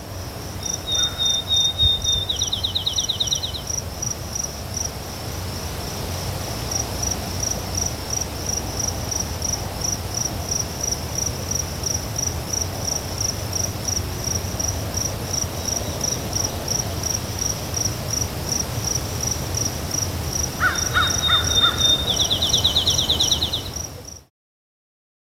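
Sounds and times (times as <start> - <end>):
shrill drone of insects: 0.0 - 24.3
Eastern phoebe song: 0.6 - 3.8, 20.6 - 23.9.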